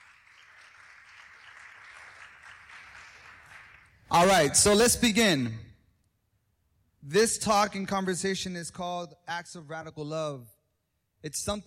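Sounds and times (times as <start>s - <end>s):
audience applause: 0.0s - 4.3s
speech: 4.1s - 5.7s, 7.1s - 10.6s, 11.2s - 11.6s.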